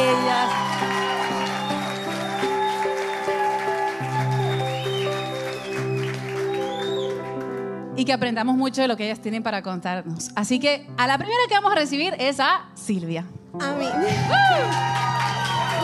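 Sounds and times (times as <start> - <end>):
audience applause: 0.0 - 7.8, 14.0 - 15.8
speech: 8.1 - 15.0.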